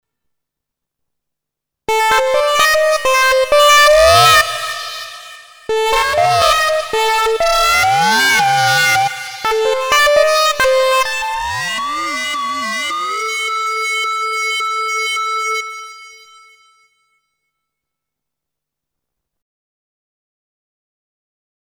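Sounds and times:
Tesla coil: 0:02.2 - 0:16.8.

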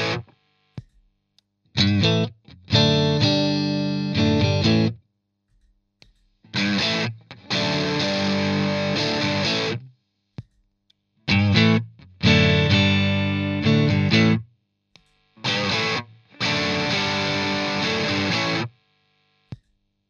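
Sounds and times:
guitar riff through a Screamer overdrive channel one: 0:00.0 - 0:00.3, 0:01.8 - 0:05.0, 0:06.5 - 0:09.9, 0:11.3 - 0:14.4, 0:15.4 - 0:18.8.

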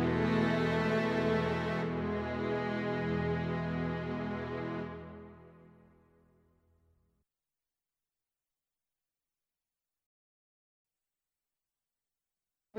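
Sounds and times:
strings: 0:00.0 - 0:05.8.

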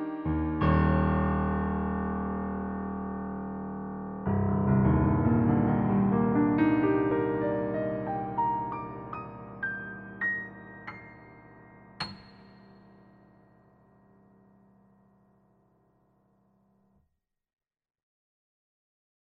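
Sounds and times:
PC3-A8 concert piano: 0:00.0 - 0:15.2.

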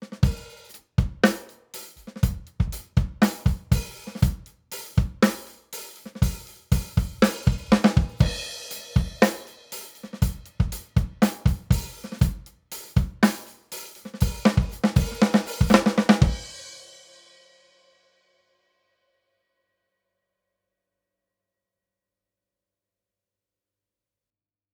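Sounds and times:
drums without EQ: 0:00.0 - 0:18.0.

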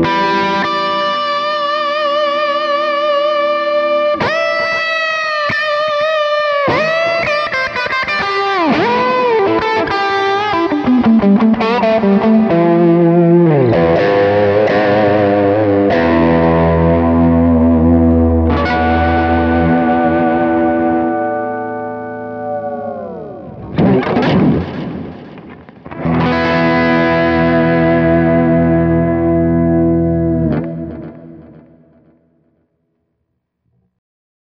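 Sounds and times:
electric guitar crunch lead noodling: 0:00.0 - 0:32.1.

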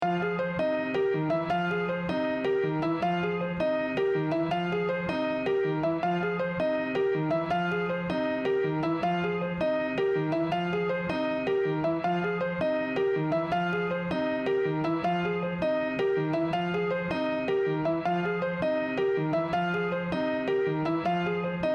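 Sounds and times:
wet piano: 0:00.0 - 0:21.7.

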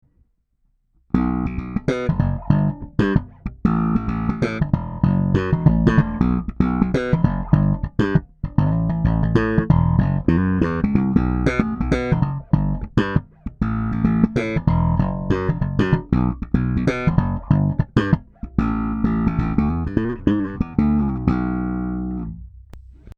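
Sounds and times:
Harley Benton BZ 5000 passive bass guitar slap: 0:01.1 - 0:23.1.

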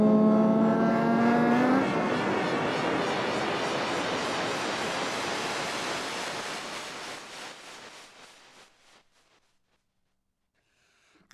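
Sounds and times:
reversed synth: 0:00.0 - 0:09.0.

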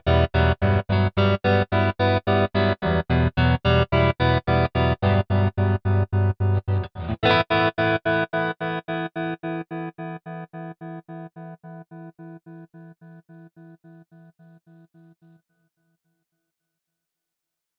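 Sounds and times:
Telecaster clean electric guitar with tremolo: 0:00.0 - 0:13.7.

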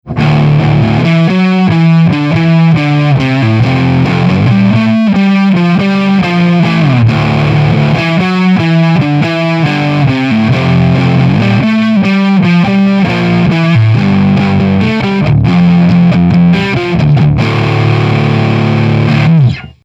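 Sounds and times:
overdriven guitar on neck pickup: 0:00.0 - 0:19.8.

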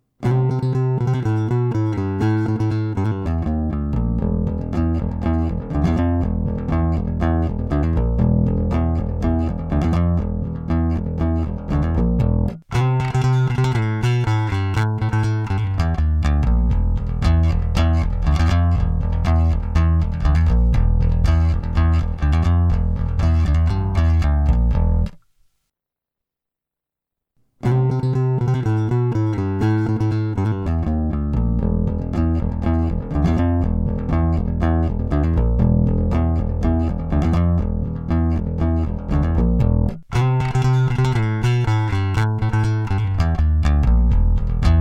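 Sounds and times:
Rickenbacker bass guitar through Avalon DI preamp: 0:00.0 - 0:25.2, 0:27.6 - 0:44.7.

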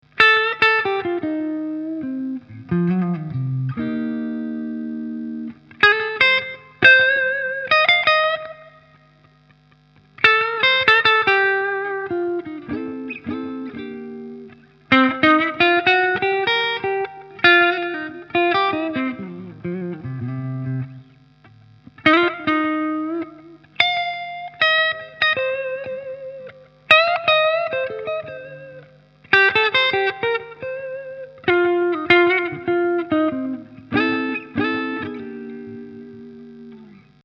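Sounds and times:
Epiphone Les Paul Custom electric guitar with clean tone: 0:00.0 - 0:37.2.

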